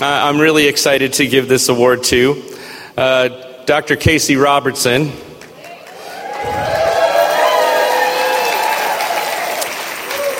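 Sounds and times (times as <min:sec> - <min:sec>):
speech: 0:00.0 - 0:05.3
audience applause: 0:05.5 - 0:10.3.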